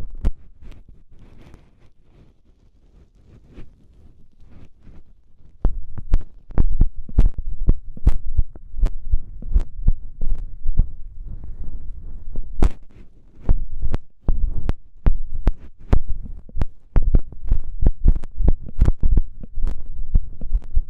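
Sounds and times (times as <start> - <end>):
ear cleaning in left ear: 5.6 - 20.8.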